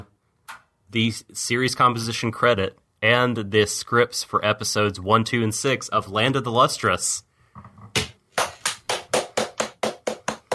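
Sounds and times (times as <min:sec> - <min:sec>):
speech: 0:00.9 - 0:07.7
hand clapping: 0:08.0 - 0:10.5.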